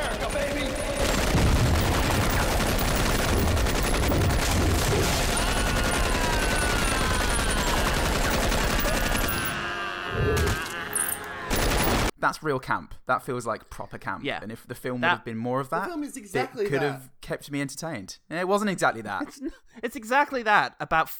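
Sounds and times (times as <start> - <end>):
laughter: 0.0 - 1.2, 4.8 - 11.6, 16.2 - 17.0, 19.1 - 19.6
two guns firing without pause in an action film scene: 0.0 - 9.7, 11.5 - 12.1
speech: 12.2 - 21.1.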